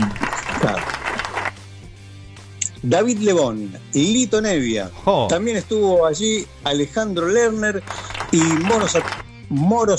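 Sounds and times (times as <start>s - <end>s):
small crowd applauding: 0.0s - 1.6s, 7.8s - 9.2s
speech: 2.8s - 9.9s.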